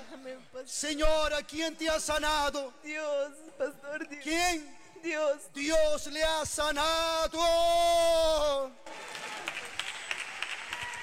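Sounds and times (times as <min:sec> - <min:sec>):
loud spoken voice: 0:00.0 - 0:08.8
speech: 0:00.1 - 0:09.0
church audience applause: 0:08.8 - 0:11.0.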